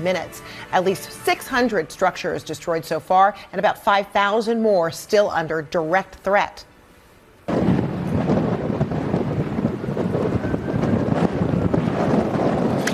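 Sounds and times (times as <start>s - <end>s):
speech: 0.0s - 6.7s
fierce howling winds during wildfire: 7.5s - 12.9s.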